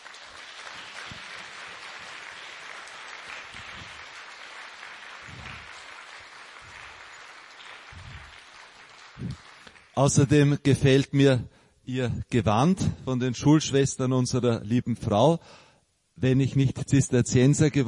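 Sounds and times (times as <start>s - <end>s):
audience applause: 0.0s - 10.0s
speech: 9.2s - 15.6s, 16.2s - 17.8s.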